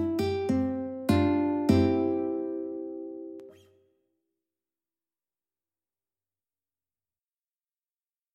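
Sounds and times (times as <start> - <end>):
ukulele: 0.0 - 3.6.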